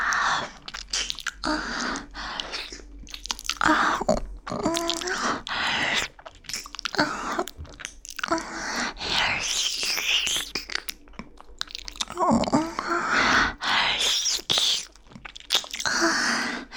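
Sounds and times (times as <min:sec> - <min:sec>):
chewing and crunching breakfast: 0:00.0 - 0:16.7.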